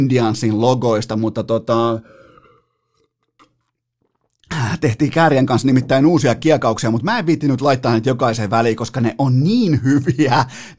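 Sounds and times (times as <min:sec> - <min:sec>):
speech: 0:00.0 - 0:02.2, 0:04.5 - 0:10.7
person taking a small sip of water: 0:02.0 - 0:04.5.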